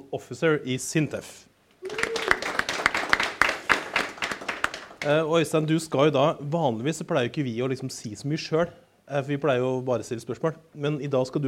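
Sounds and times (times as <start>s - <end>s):
speech: 0.1s - 1.5s, 5.0s - 11.4s
scattered audience applause welcoming a panel guest: 1.8s - 5.2s.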